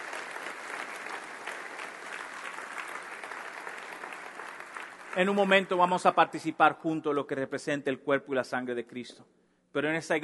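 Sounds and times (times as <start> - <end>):
audience applause: 0.0 - 6.0
speech: 5.2 - 10.2.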